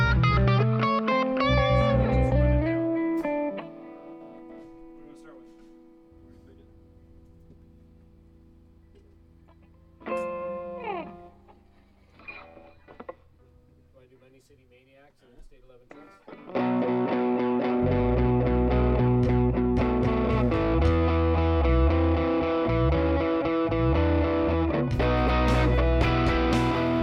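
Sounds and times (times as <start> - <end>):
strings playing: 0.0 - 7.5, 16.3 - 27.0.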